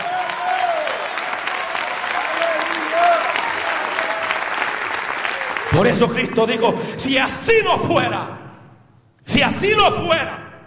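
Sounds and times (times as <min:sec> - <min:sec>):
audience applause: 0:00.0 - 0:06.7
speech: 0:05.8 - 0:08.4, 0:09.3 - 0:10.4.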